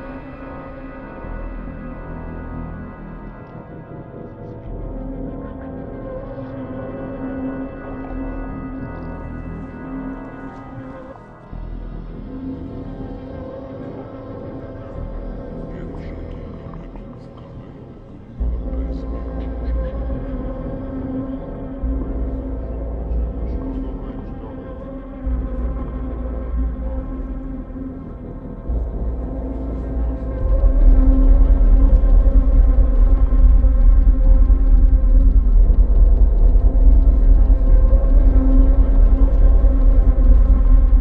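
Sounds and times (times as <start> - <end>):
dark ambient exploration music: 0.0 - 40.9.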